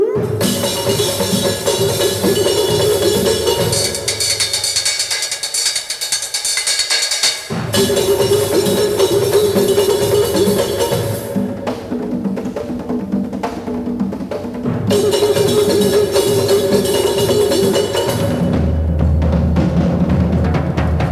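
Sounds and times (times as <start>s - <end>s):
samba batucada percussion: 0.2s - 21.0s.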